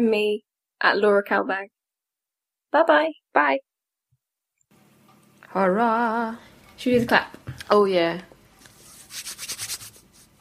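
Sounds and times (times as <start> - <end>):
speech: 0.0 - 1.8, 2.7 - 3.7, 5.5 - 8.3
hands rubbing together: 8.6 - 10.3.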